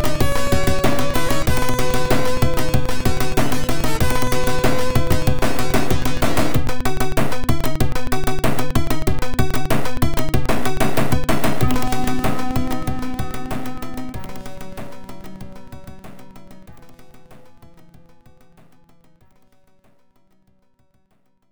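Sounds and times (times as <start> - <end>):
heavy metal music: 0.0 - 16.8.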